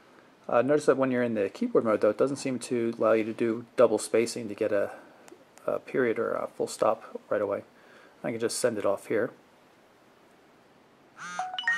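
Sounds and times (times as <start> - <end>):
speech: 0.5 - 9.4
phone text-message notification chime: 11.2 - 11.7.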